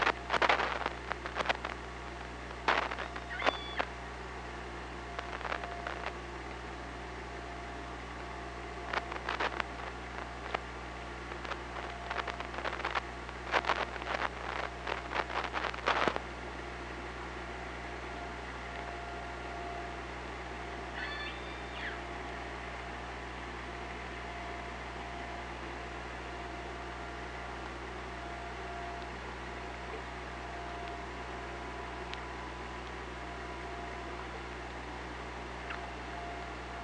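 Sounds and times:
low hydrophone hum: 0:00.0 - 0:36.8
killer whale pulsed call: 0:21.0 - 0:22.0.

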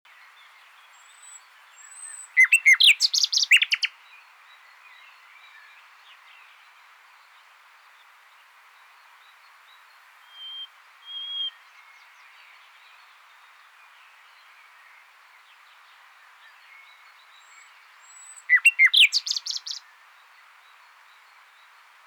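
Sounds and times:
common nightingale singing: 0:00.4 - 0:04.0, 0:10.2 - 0:12.4, 0:16.4 - 0:19.9.

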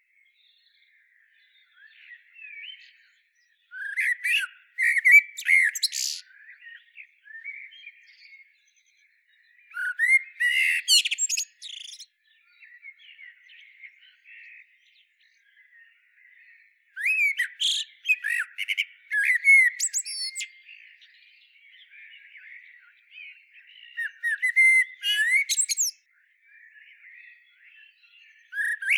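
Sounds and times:
faint thin songs of birds: 0:00.0 - 0:28.9
Eurasian blackbird singing: 0:00.2 - 0:28.9.

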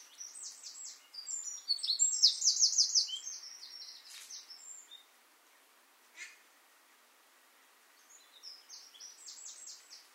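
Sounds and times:
Eurasian wren singing: 0:00.0 - 0:05.1, 0:08.0 - 0:10.0.

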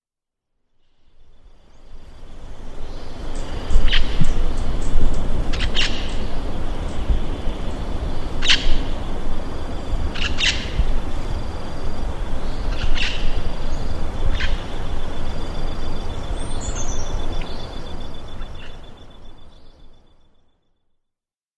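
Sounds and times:
low rumbling background noise: 0:02.1 - 0:20.0
sharp high bird calls: 0:03.4 - 0:19.5.

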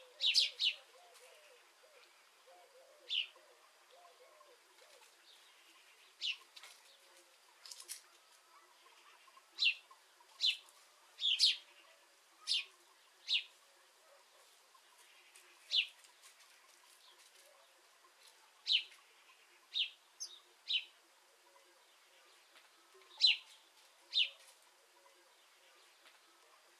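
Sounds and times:
House sparrow chirping: 0:00.0 - 0:01.3, 0:09.0 - 0:13.5, 0:18.6 - 0:21.0, 0:23.1 - 0:24.5.

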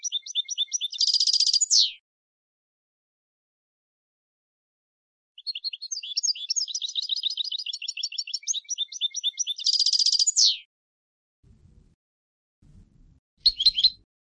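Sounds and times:
European goldfinch Carduelis carduelis twittering: 0:00.0 - 0:01.9, 0:05.4 - 0:10.6, 0:13.4 - 0:14.0.

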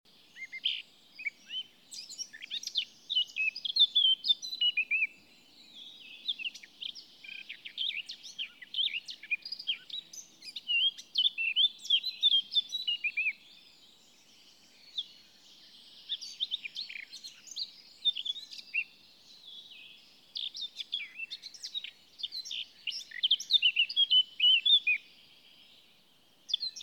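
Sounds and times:
Eurasian blackcap singing: 0:00.1 - 0:13.7, 0:14.8 - 0:25.0, 0:26.5 - 0:26.8.

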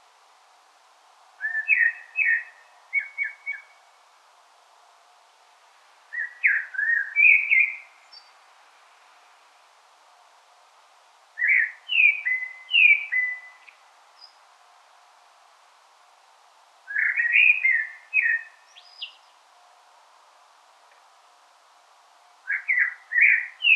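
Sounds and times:
common blackbird singing: 0:01.4 - 0:03.8, 0:06.1 - 0:08.3, 0:11.4 - 0:14.4, 0:16.9 - 0:19.3, 0:22.5 - 0:23.7.

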